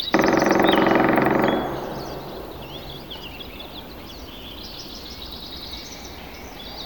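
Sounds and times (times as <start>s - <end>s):
Sierras mountain ambience: 0.1s - 4.5s.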